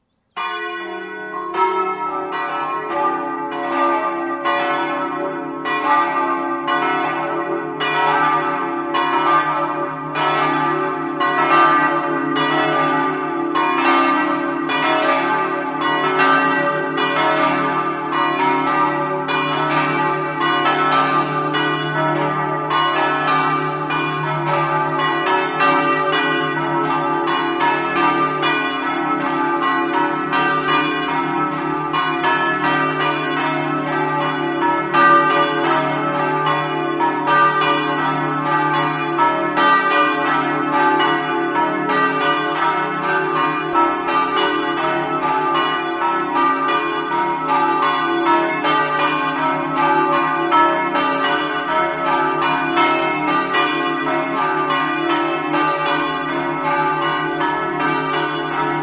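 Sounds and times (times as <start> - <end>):
bells ringing: 0.4 - 58.8.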